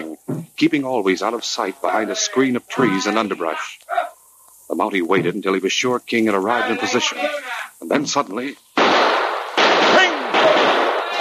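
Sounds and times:
speech: 0:00.6 - 0:03.9, 0:04.8 - 0:08.7
carbine and revolver gunshots fired into the air by a Mountie: 0:08.8 - 0:11.1.

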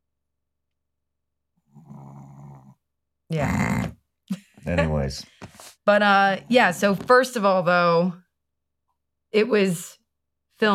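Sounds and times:
rattling snore: 0:01.7 - 0:02.8
harsh breath or snort: 0:01.7 - 0:04.0
speech: 0:03.3 - 0:04.0, 0:04.6 - 0:08.2, 0:09.3 - 0:10.0, 0:10.6 - 0:10.7.

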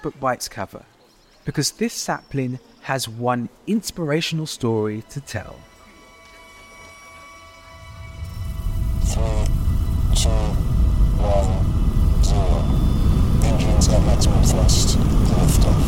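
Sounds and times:
speech: 0:00.0 - 0:05.7, 0:14.2 - 0:15.8
rocket engines at full thrust during liftoff: 0:07.8 - 0:15.8.

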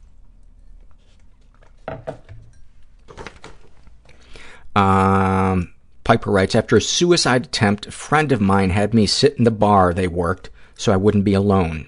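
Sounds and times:
sipping tea: 0:00.0 - 0:05.2
speech: 0:04.8 - 0:11.8.

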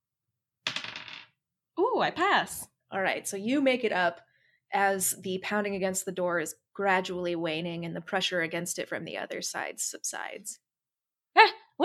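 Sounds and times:
dice rattling across a hard surface: 0:00.7 - 0:01.3
speech: 0:02.0 - 0:10.6, 0:11.4 - 0:11.8.

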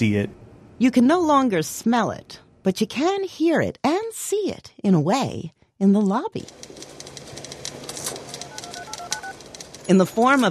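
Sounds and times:
speech: 0:00.0 - 0:06.7, 0:09.9 - 0:10.4
synthesized clatter of old typewriters, teletype machines and rotary phones: 0:06.4 - 0:10.4
brief electronic tones: 0:08.4 - 0:09.3.

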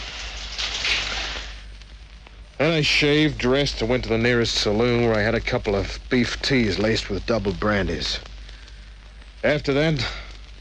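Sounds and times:
shower water running: 0:00.0 - 0:01.6
speech: 0:02.6 - 0:08.3, 0:09.4 - 0:10.2.

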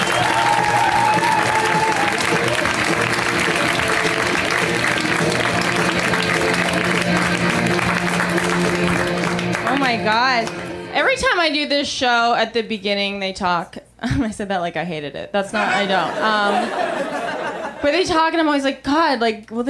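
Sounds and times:
scattered cheers and whoops: 0:00.0 - 0:02.9
crowd applauding for comedian: 0:00.0 - 0:10.9
speech: 0:10.1 - 0:17.2, 0:17.8 - 0:19.6
laughter: 0:15.5 - 0:18.0.

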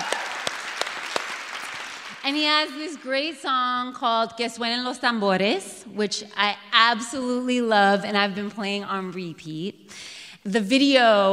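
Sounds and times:
crowd clapping: 0:00.0 - 0:02.4
speech: 0:02.3 - 0:11.3.

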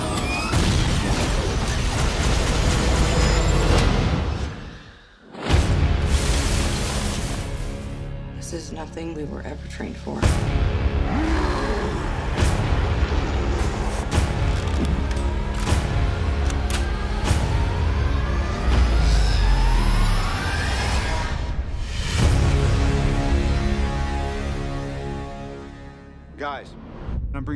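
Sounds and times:
layered film trailer score: 0:00.2 - 0:27.5
speech: 0:08.9 - 0:11.3, 0:26.4 - 0:27.5
wailing siren-like sweeps: 0:16.9 - 0:21.6.

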